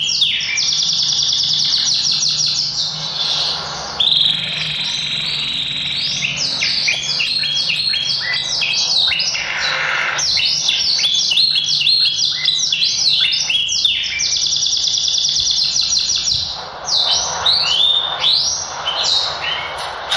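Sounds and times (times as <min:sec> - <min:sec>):
Yorkshire canary singing high rolling trills: 0:00.0 - 0:20.1.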